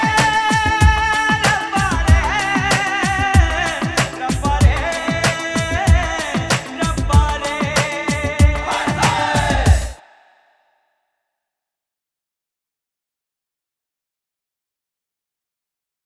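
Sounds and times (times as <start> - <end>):
funky music mix: 0.0 - 10.0.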